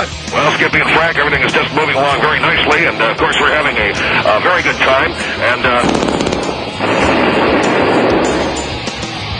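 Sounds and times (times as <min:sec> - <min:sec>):
speech: 0:00.0 - 0:06.9
gunfire shooting a craft out of the sky in a comedy sketch: 0:05.6 - 0:09.3.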